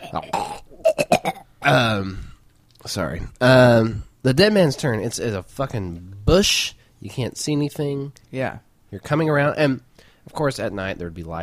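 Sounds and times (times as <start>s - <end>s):
throaty burp-like guttural noise made by a voice: 0.0s - 1.9s
speech: 0.1s - 0.5s, 1.6s - 11.4s.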